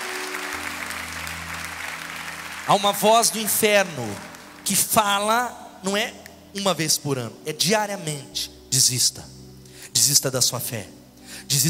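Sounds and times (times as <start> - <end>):
audience applause: 0.0 - 4.8
speech: 2.7 - 9.4, 10.0 - 11.6.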